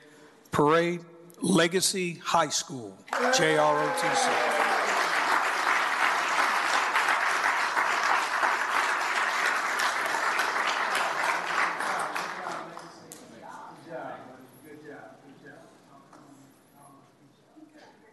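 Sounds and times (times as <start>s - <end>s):
speech: 0.6s - 4.6s
crowd applauding: 3.1s - 13.0s.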